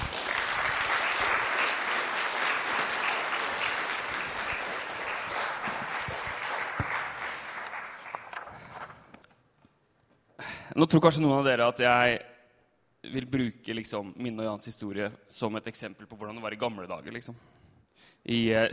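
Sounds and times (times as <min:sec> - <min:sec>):
audience applause: 0:00.0 - 0:08.7
speech: 0:10.8 - 0:12.3, 0:13.1 - 0:18.7.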